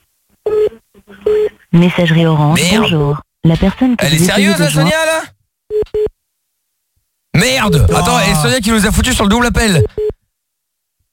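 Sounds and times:
speech: 0:01.1 - 0:06.1, 0:07.4 - 0:10.1
phone number dialing beeps: 0:09.9 - 0:10.2.

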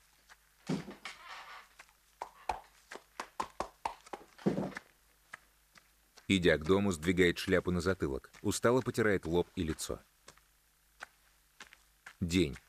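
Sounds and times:
hooves clopping as a horse is led into a stable: 0:00.0 - 0:12.6
brief rustling scrapes: 0:00.6 - 0:02.5
speech: 0:06.3 - 0:10.1, 0:12.2 - 0:12.6.

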